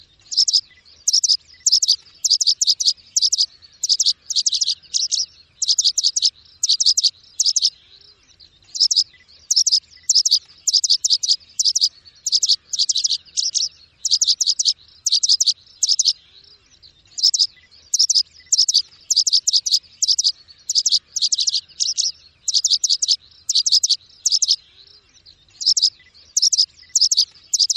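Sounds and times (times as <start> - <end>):
bird rapid high chirps: 0.0 - 27.7.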